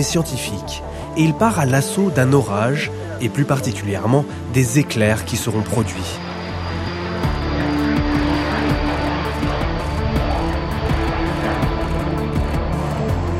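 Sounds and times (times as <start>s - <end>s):
speech: 0.0s - 6.3s
Falcon 20 jet aircraft taking off: 0.0s - 13.3s.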